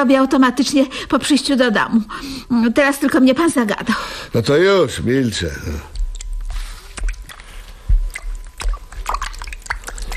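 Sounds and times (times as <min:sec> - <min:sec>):
speech: 0:00.0 - 0:06.0
hands washed thoroughly with soap under water: 0:05.9 - 0:10.1
water splashing and dripping: 0:06.0 - 0:10.1.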